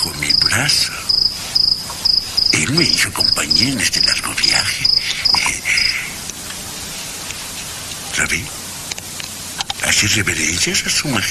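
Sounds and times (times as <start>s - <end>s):
pet cricket chirping: 0.0s - 6.6s
soft steady hiss: 0.0s - 11.2s
speech: 0.6s - 1.0s, 2.6s - 5.0s, 10.0s - 11.2s.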